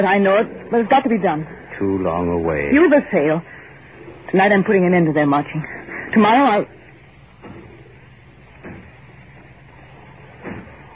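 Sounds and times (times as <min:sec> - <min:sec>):
speech: 0:00.0 - 0:03.5, 0:04.3 - 0:06.8
heavy thuds of a door being battered: 0:08.6 - 0:09.1, 0:10.4 - 0:10.9.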